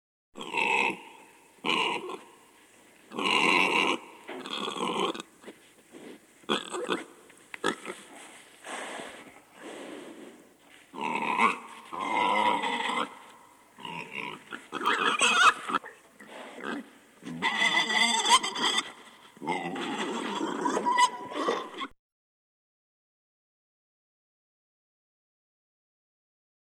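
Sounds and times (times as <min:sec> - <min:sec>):
domestic pig grunting: 0:00.4 - 0:02.2, 0:03.1 - 0:05.3, 0:06.5 - 0:10.0, 0:10.9 - 0:21.9.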